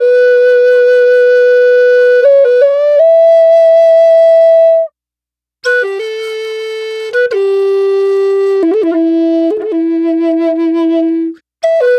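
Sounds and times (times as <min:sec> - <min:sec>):
Native American flute playing: 0:00.0 - 0:04.9, 0:05.6 - 0:11.9.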